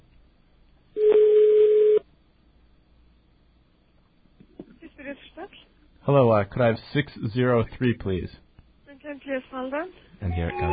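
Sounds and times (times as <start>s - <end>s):
telephone ringing: 1.0s - 2.0s, 10.4s - 10.7s
speech: 6.1s - 8.4s, 9.6s - 10.7s.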